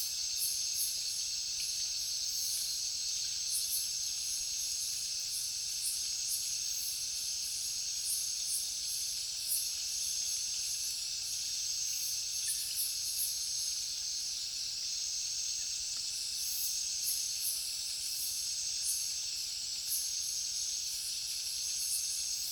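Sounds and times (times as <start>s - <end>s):
heavy cricket chorus at night in a jungle: 0.0s - 22.4s.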